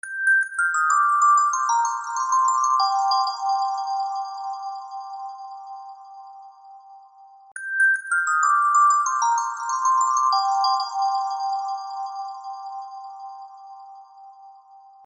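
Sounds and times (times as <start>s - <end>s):
Christmas carol ringtone: 0.0s - 5.2s, 7.6s - 12.8s.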